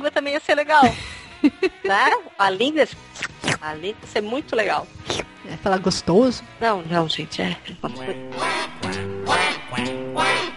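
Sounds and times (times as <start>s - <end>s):
speech: 0.0s - 9.0s
person imitating a duck with hands and mouth at a duck-calling championship: 7.8s - 10.5s.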